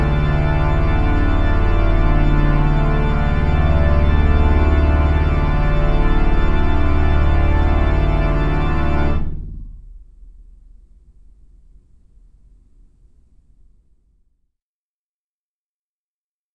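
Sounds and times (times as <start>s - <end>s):
organ playing a fugue: 0.0s - 9.3s.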